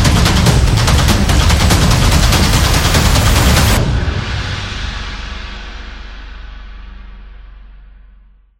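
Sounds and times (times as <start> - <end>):
epic action trailer taiko drums: 0.0 - 6.3.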